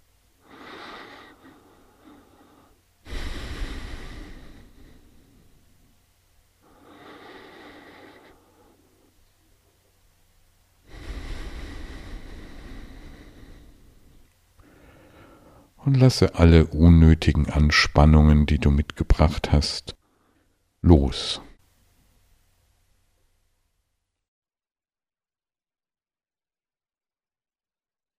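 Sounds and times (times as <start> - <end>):
slow deep breathing during a guided meditation: 0.4 - 5.9, 6.6 - 9.2, 10.8 - 15.8
speech: 15.9 - 20.0, 20.8 - 21.5.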